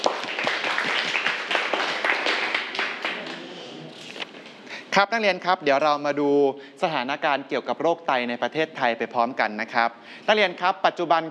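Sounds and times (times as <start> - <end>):
group of students clapping: 0.0 - 3.5
speech: 5.0 - 11.3.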